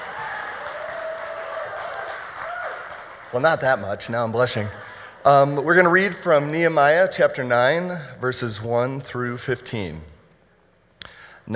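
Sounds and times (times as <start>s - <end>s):
crowd clapping: 0.0s - 5.2s
speech: 3.3s - 10.1s.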